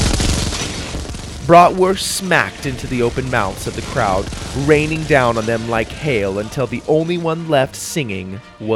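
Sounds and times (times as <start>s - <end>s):
toy guns firing a rapid spray: 0.1s - 7.1s
speech: 1.5s - 8.7s.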